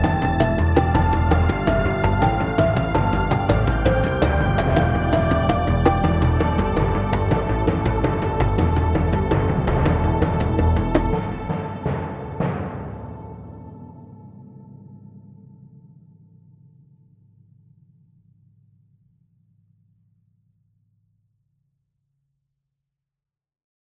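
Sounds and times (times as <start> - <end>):
layered percussion: 0.0 - 13.6.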